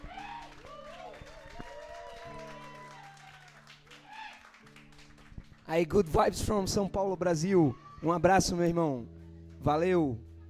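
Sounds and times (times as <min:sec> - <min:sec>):
voices whooping and calling: 0:00.0 - 0:04.6
small group clapping: 0:00.0 - 0:06.2
speech: 0:05.7 - 0:10.3.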